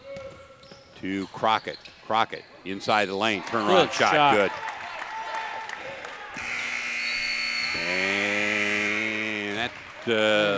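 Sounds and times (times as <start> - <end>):
speech: 1.0 - 4.6, 10.1 - 10.5
basketball game-end buzzer: 6.4 - 9.9.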